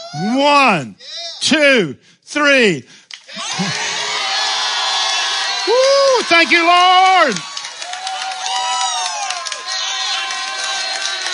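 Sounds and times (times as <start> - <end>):
speech: 0.1 - 3.0, 3.6 - 3.8, 6.2 - 7.5
audience shouting and cheering with whoops and yells: 3.2 - 11.3.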